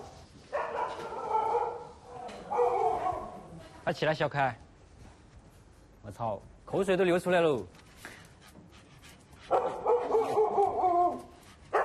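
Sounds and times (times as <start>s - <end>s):
large dog barking: 0.5s - 3.5s, 9.5s - 11.8s
speech: 3.9s - 4.6s, 6.1s - 7.8s.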